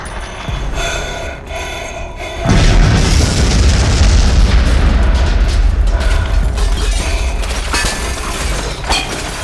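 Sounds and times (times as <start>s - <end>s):
explosion of thrown explosives: 2.5s - 8.9s.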